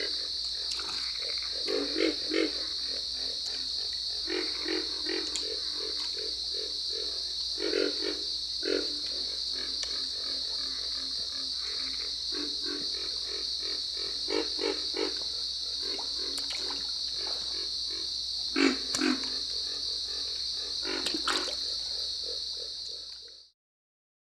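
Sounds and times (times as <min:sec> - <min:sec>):
Pig Frog calling in Eastern North America: 0:00.0 - 0:23.4.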